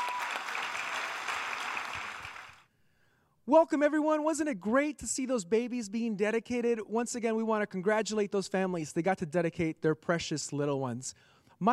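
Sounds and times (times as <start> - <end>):
audience applauding: 0.0 - 2.6
speech: 3.5 - 11.7.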